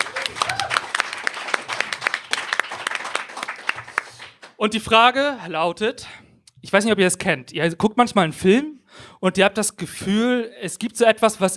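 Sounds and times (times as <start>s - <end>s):
audience applause: 0.0s - 4.6s
speech: 4.6s - 11.5s.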